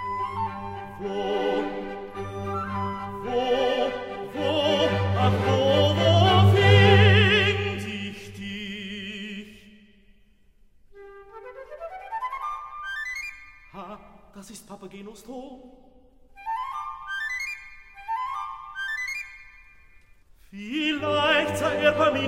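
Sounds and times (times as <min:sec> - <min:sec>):
aria singing: 0:00.0 - 0:09.6, 0:20.6 - 0:22.2.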